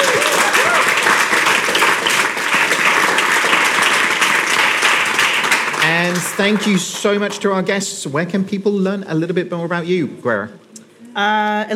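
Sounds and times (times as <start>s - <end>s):
crowd applauding: 0.0s - 7.7s
speech: 6.4s - 11.7s.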